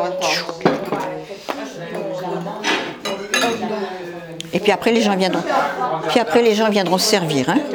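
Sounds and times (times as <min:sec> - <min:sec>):
speech: 0:00.0 - 0:02.0, 0:04.6 - 0:07.7
dishes and cutlery clinking as a plate is assembled: 0:00.0 - 0:07.7
serving tray handled: 0:02.6 - 0:04.7.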